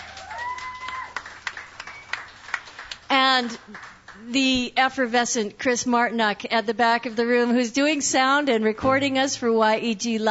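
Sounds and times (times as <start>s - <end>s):
scattered faint audience applause: 0.0s - 4.2s
speech: 3.3s - 10.2s.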